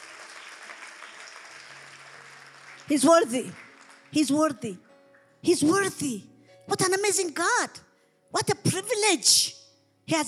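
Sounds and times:
audience clapping: 0:00.0 - 0:04.7
speech: 0:02.9 - 0:10.2.

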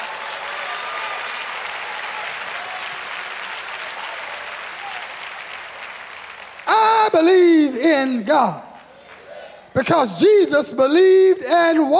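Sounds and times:
audience clapping hands: 0:00.0 - 0:09.5
speech: 0:07.1 - 0:08.6, 0:09.8 - 0:11.9.

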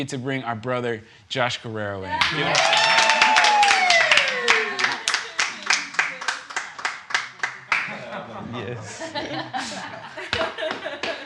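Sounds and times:
speech: 0:00.0 - 0:02.9, 0:08.5 - 0:10.3
laughter: 0:02.1 - 0:06.3, 0:07.6 - 0:11.2
audience cheering: 0:02.1 - 0:06.6
audience clapping: 0:02.2 - 0:08.2, 0:10.3 - 0:11.2.

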